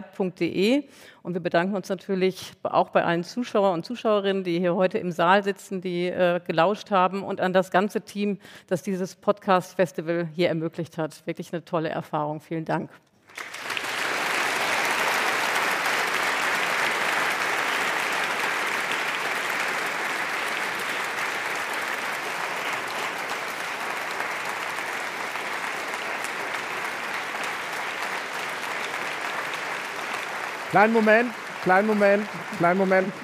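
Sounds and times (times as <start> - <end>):
speech: 0.2 - 13.6, 30.8 - 33.2
audience applause in hall: 13.3 - 33.2.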